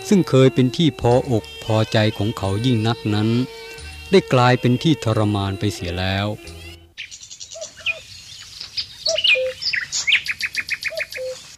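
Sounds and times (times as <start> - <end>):
speech: 0.1 - 6.6
small birds chirping on branches: 6.6 - 11.5.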